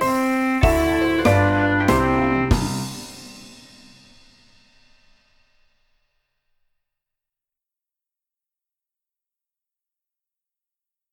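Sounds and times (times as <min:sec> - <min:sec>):
C clarinet playing boogie: 0:00.0 - 0:03.5.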